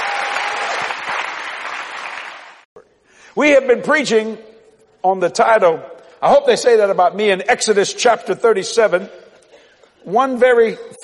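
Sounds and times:
audience hand clapping: 0.0s - 2.7s
speech: 3.4s - 9.2s, 10.0s - 11.0s.

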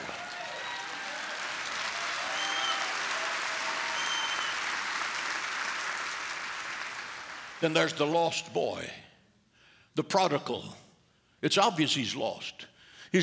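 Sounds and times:
audience clapping: 0.0s - 8.2s
speech: 7.6s - 9.0s, 10.0s - 10.8s, 11.4s - 13.2s.

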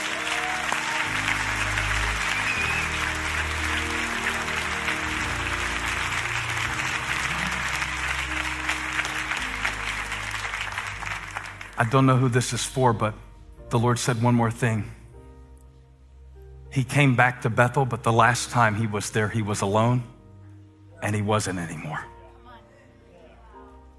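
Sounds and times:
audience clapping hands in praise: 0.0s - 12.5s
speech: 11.8s - 15.0s, 16.7s - 20.1s, 21.0s - 22.1s.

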